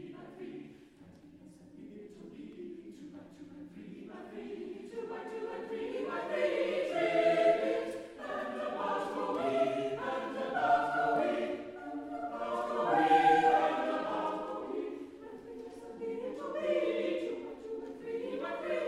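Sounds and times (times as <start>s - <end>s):
vocal ensemble singing: 0.0s - 18.8s.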